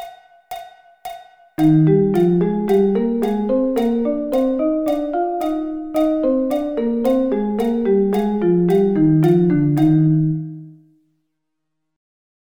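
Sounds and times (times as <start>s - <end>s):
musical interval of thirds: 1.6s - 10.8s.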